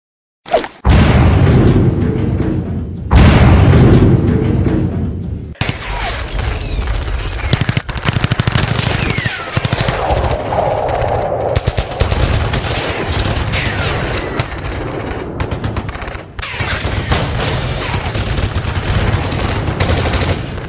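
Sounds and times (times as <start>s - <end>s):
loud booms: 0.8s - 20.6s
heavy automatic gunfire from hundreds of enemy guns: 5.6s - 10.3s, 11.7s - 20.6s.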